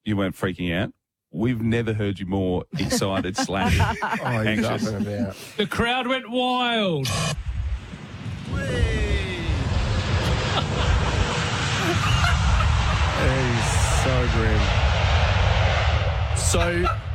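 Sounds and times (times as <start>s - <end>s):
speech: 0.0s - 7.5s, 13.2s - 14.9s, 16.5s - 17.0s
laughter: 2.7s - 5.8s, 10.2s - 14.4s, 16.6s - 17.0s
airplane landing, wheels touching down: 7.7s - 17.1s.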